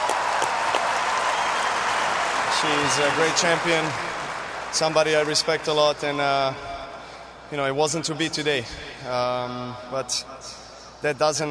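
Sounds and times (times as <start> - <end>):
audience applause at a tennis champion's event: 0.0 - 5.9
speech: 2.6 - 4.1, 4.7 - 6.7, 7.5 - 11.4.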